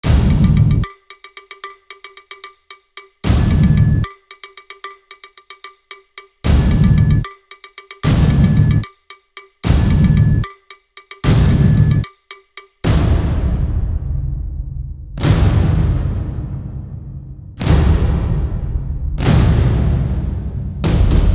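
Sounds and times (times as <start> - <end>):
drums: 0.0 - 9.0, 9.6 - 21.3.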